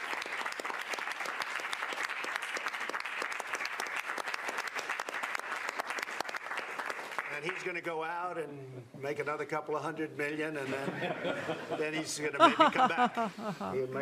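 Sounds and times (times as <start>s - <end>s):
audience applause: 0.0s - 7.8s
speech: 7.4s - 14.0s
laughter: 10.7s - 14.0s.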